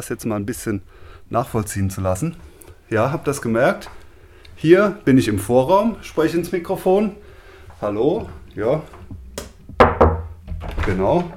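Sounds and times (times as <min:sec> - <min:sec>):
speech: 0:00.0 - 0:04.0, 0:04.6 - 0:07.2, 0:07.8 - 0:09.0, 0:10.9 - 0:11.3
heavy wooden door thuds: 0:09.7 - 0:11.1.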